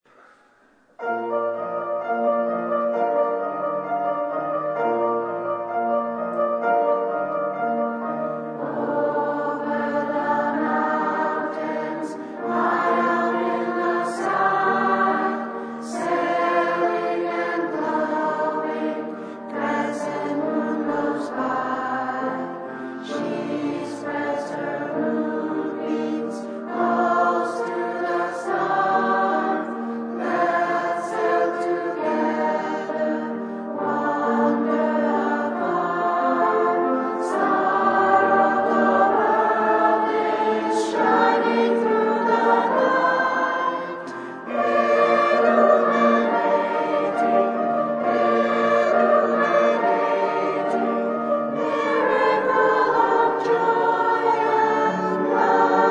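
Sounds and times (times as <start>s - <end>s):
choir singing a Ukrainian winter holiday song: 1.0s - 55.8s.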